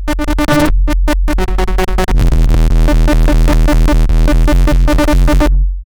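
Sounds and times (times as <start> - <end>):
weird oscillating dub music: 0.2 - 5.8.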